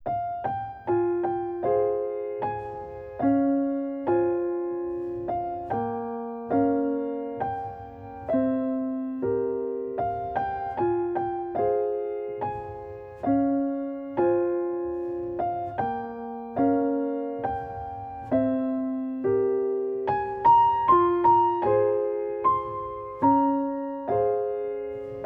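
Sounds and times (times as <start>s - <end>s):
instrumental music: 0.0s - 25.2s.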